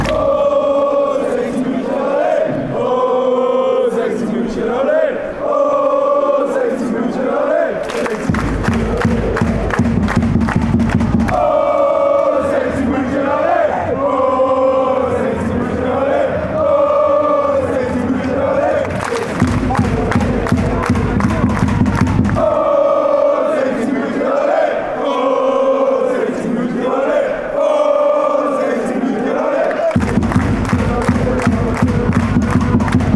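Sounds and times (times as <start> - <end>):
fans chanting: 0.0 - 33.1.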